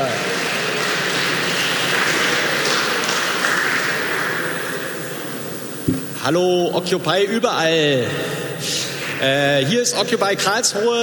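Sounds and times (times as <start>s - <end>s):
audience applause: 0.0s - 5.2s
speech: 6.3s - 11.0s.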